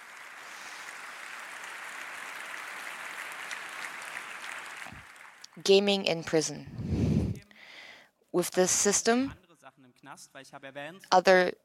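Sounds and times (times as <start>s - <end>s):
audience applause: 0.0s - 5.5s
speech: 5.6s - 6.8s, 8.4s - 9.4s, 10.1s - 11.6s.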